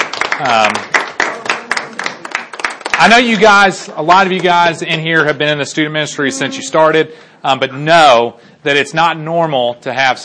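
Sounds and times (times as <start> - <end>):
crowd audience applause for the band: 0.0 - 4.5
speech: 0.4 - 0.9, 3.0 - 10.2.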